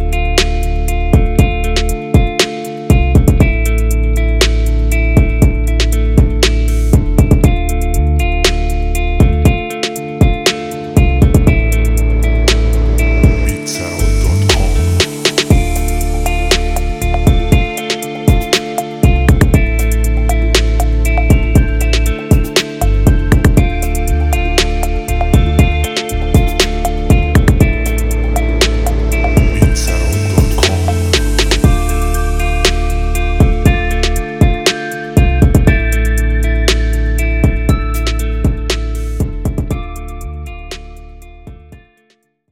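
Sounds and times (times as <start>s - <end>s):
rap rock beat: 0.0s - 42.0s.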